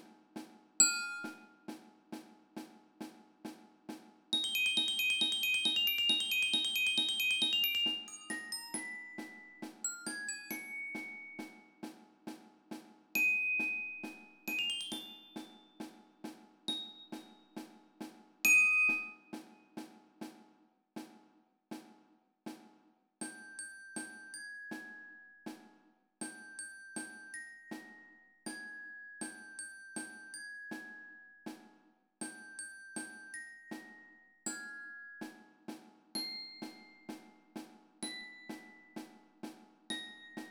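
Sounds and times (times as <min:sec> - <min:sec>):
glockenspiel: 0:00.8 - 0:01.8, 0:04.3 - 0:11.9, 0:13.1 - 0:17.8, 0:18.4 - 0:19.7, 0:23.2 - 0:25.6, 0:26.2 - 0:39.2, 0:39.9 - 0:40.5.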